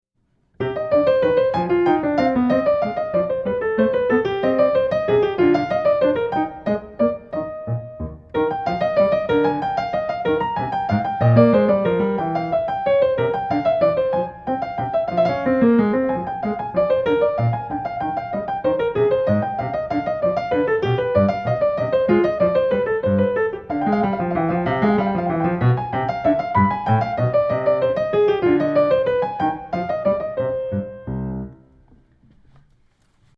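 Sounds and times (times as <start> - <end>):
suite in C minor: 0.6 - 32.2.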